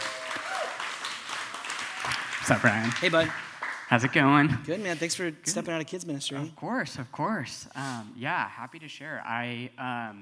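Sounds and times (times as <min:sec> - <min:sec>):
crowd applauding: 0:00.0 - 0:04.4
speech: 0:02.5 - 0:10.2.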